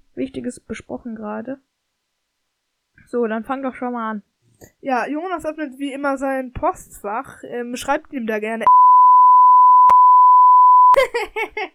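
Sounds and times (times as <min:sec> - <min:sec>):
speech: 0:00.2 - 0:01.7, 0:03.1 - 0:08.8, 0:11.0 - 0:11.7
censor beep over spoken email address: 0:08.7 - 0:11.0
people laughing: 0:11.0 - 0:11.7.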